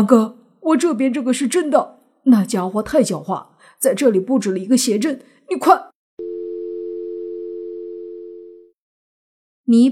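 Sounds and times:
speech: 0.0 - 5.9, 9.7 - 9.9
telephone busy signal: 6.2 - 8.7.

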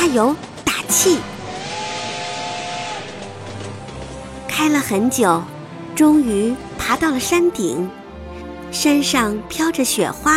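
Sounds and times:
speech: 0.0 - 1.4, 4.6 - 8.0, 8.7 - 10.3
steam train whistle: 0.9 - 3.8.

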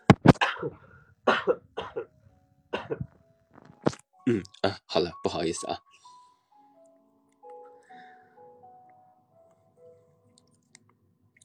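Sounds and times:
person coughing: 0.3 - 2.1, 2.8 - 3.1
speech: 4.3 - 5.9.

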